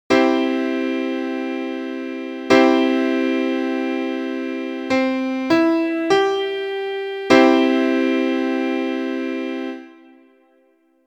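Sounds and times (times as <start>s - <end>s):
musical chord: 0.1s - 10.8s.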